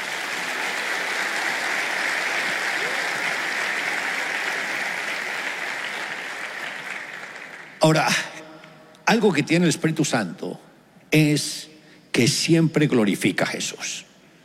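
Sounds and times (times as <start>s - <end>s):
audience applause: 0.0s - 8.0s
speech: 7.9s - 8.3s, 9.1s - 14.1s.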